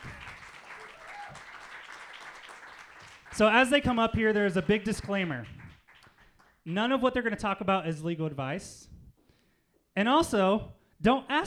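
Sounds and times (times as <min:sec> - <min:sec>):
audience applause welcoming speakers at an event with immigration lawyers: 0:00.0 - 0:06.6
speech: 0:03.4 - 0:05.6, 0:06.6 - 0:08.9, 0:10.0 - 0:11.4.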